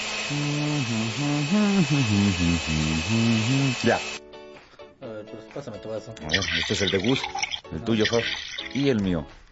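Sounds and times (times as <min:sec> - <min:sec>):
blender mixing papaya and oats: 0:00.0 - 0:04.2
speech: 0:00.3 - 0:04.2, 0:05.5 - 0:09.4.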